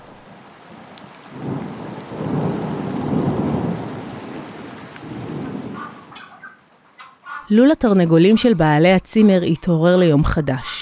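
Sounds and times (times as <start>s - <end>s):
steady rain: 0.0s - 9.2s
rolling thunder during a night thunderstorm over a rural village: 0.1s - 6.4s
speech: 7.5s - 10.7s.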